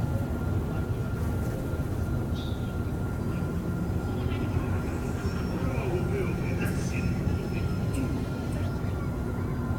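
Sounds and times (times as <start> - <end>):
market ambience: 0.2 - 9.7.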